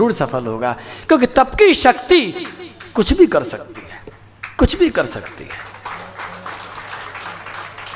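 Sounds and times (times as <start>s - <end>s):
speech: 0.0s - 4.0s, 4.6s - 5.8s
audience applause: 4.4s - 7.9s.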